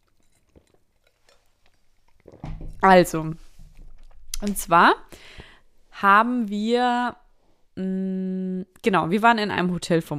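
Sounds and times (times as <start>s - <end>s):
person sipping a drink: 0.0s - 2.4s, 3.3s - 4.4s
swallow: 0.0s - 4.4s
speech: 2.8s - 3.4s, 4.4s - 5.4s, 6.0s - 7.2s, 7.8s - 10.1s.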